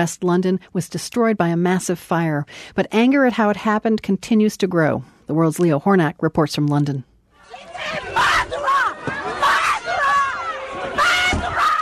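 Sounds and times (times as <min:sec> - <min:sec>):
speech: 0:00.0 - 0:08.3
residents at the Grenfell Tower fire site yelling at the prime minister: 0:07.4 - 0:11.7.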